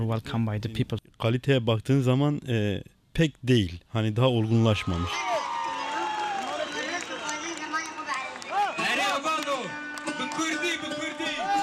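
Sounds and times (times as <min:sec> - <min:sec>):
speech: 0:00.0 - 0:05.4
crowd cheering: 0:04.4 - 0:11.6.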